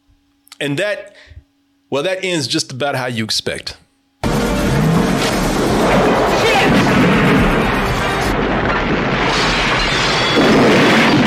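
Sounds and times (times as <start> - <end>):
speech: 0.6 - 3.8
car exploding: 4.2 - 11.2.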